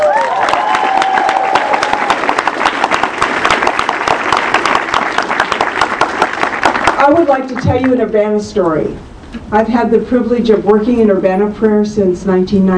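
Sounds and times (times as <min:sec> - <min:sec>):
audience applause: 0:00.0 - 0:07.4
speech: 0:07.1 - 0:12.7.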